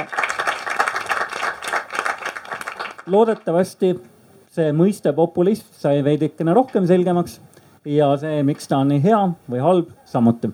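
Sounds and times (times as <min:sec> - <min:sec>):
audience applause: 0:00.0 - 0:03.5
speech: 0:03.1 - 0:10.5.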